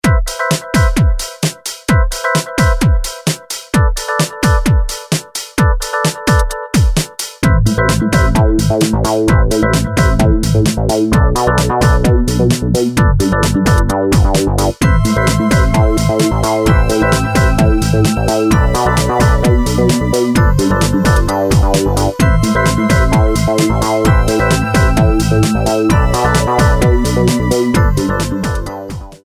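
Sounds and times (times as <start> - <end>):
music beat: 0.0 - 29.2.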